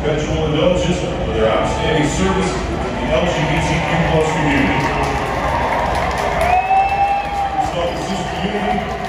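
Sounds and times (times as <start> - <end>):
speech: 0.2 - 5.1
crowd booing at a Dodgers baseball stadium: 3.2 - 9.0.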